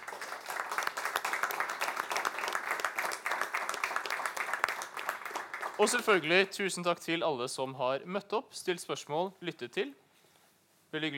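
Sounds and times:
audience applause: 0.0 - 6.3
speech: 5.8 - 10.0, 10.9 - 11.1.

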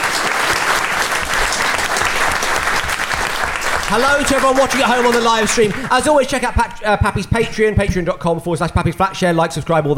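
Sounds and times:
audience applause: 0.0 - 6.1
speech: 3.9 - 9.9.

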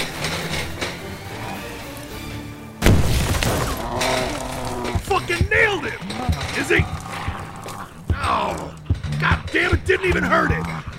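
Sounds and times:
quieter sounds of video game play: 0.2 - 10.9
pipe bomb exploding in a video game: 2.8 - 4.0
speech: 10.0 - 10.8.

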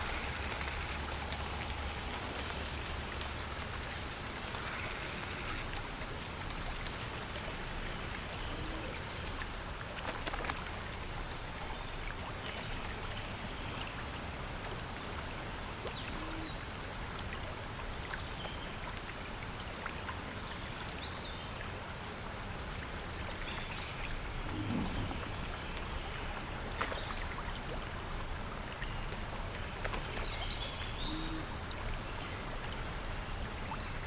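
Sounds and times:
flowing water: 0.0 - 34.0
rustling leaves: 0.0 - 34.0
low rumble: 24.3 - 26.7.

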